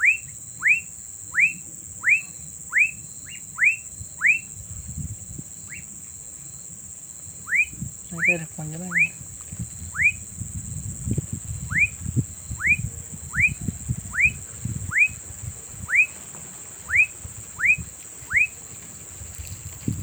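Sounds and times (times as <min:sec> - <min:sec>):
Lactátilos fuscus singing in a thicket near a passion fruit field in Carepa: 0:00.0 - 0:04.5, 0:05.6 - 0:05.9, 0:07.4 - 0:09.2, 0:09.9 - 0:10.2, 0:11.5 - 0:15.2, 0:15.8 - 0:16.2, 0:16.8 - 0:18.6
speech: 0:08.3 - 0:09.2.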